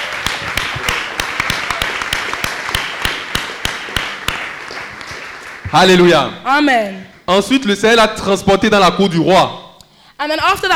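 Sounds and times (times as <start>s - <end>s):
church congregation clapping during a worship service: 0.0s - 6.4s
speech: 5.7s - 9.6s, 10.2s - 10.7s.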